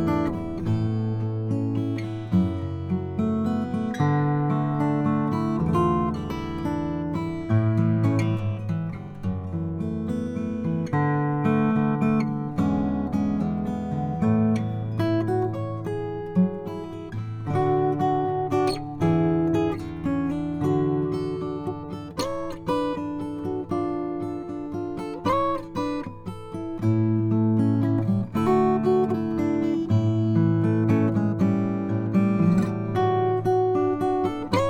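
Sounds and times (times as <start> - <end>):
Malaysian blackwood acoustic guitar: 0.0 - 34.6.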